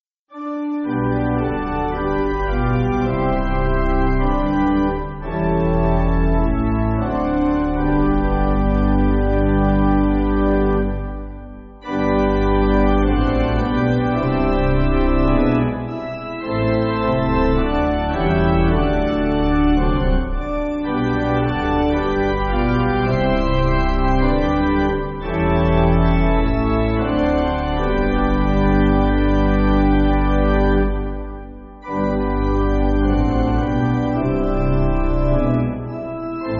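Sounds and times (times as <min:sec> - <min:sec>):
pipe organ backing for churches: 0:00.3 - 0:36.5.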